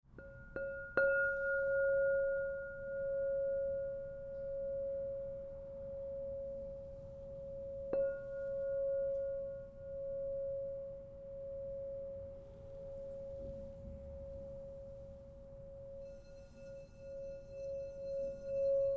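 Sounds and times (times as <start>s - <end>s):
crystal singing bowls ringing: 0.2s - 13.4s, 15.9s - 18.9s.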